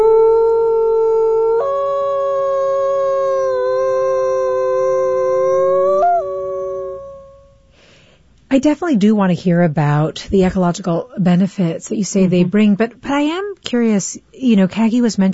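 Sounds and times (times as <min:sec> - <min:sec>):
gray wolf howl: 0:00.0 - 0:07.6
speech: 0:08.5 - 0:15.3.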